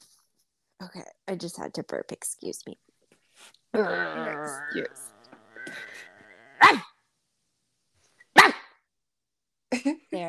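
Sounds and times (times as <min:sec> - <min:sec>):
speech: 0:00.8 - 0:05.1, 0:06.6 - 0:06.9, 0:09.8 - 0:10.2
person imitating dog barking: 0:03.8 - 0:06.9.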